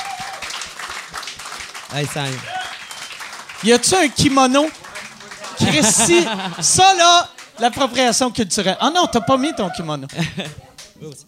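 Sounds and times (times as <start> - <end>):
crowd applauding: 0.0 - 11.0
speech: 1.9 - 2.6, 3.6 - 4.8, 5.6 - 11.2
laughter: 4.5 - 10.8.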